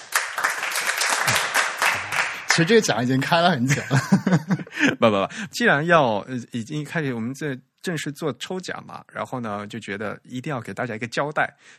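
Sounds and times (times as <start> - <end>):
applause: 0.0 - 3.5
speech: 2.6 - 11.7
laughter: 3.6 - 5.3.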